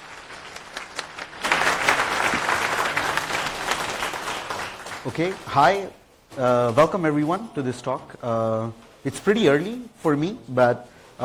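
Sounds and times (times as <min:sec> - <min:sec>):
audience applause: 0:00.0 - 0:05.8
speech: 0:05.0 - 0:11.2.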